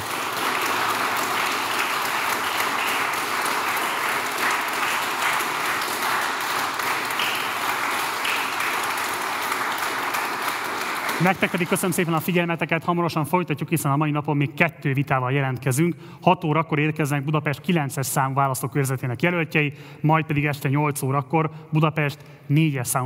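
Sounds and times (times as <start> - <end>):
studio audience applause: 0.0 - 12.5
speech: 11.2 - 23.0.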